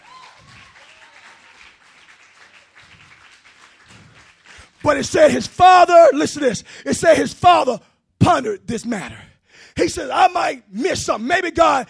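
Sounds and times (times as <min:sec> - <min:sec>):
people whooping: 0:00.0 - 0:01.7
audience clapping: 0:00.0 - 0:05.5
speech: 0:04.8 - 0:11.8.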